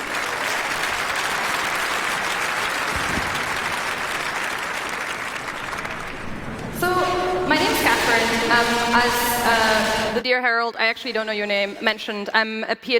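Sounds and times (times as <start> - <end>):
round of applause: 0.0 - 7.2
speech: 8.5 - 12.9.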